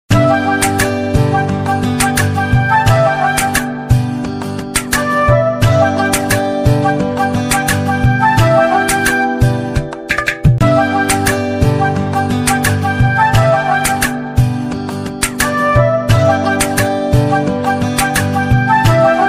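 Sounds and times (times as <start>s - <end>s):
instrumental ringtone music: 0.1s - 19.2s.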